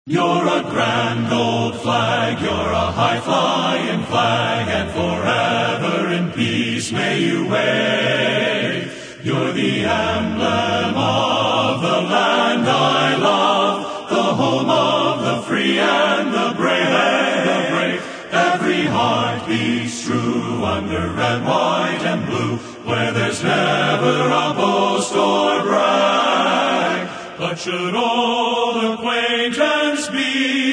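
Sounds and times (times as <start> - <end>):
men's chorus singing a patriotic song: 0.1 - 30.7.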